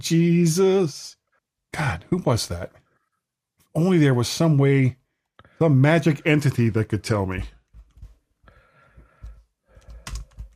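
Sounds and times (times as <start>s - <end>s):
speech: 0.0s - 2.8s, 3.7s - 5.0s, 5.6s - 7.6s
frantic typing on a computer keyboard: 9.2s - 10.5s.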